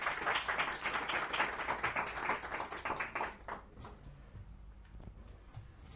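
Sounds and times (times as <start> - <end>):
audience round of applause: 0.0 - 3.7.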